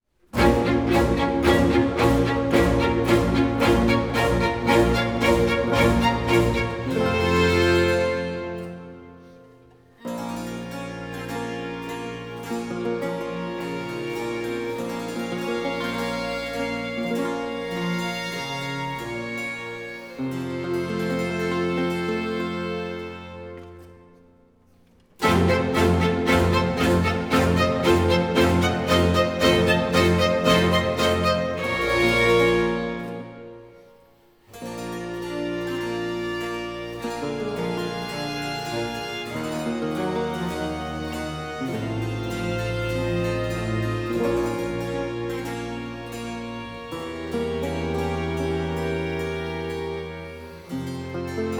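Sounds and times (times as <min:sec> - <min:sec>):
violin concerto in B minor, slow movement: 0:00.2 - 0:24.3, 0:25.1 - 0:51.5.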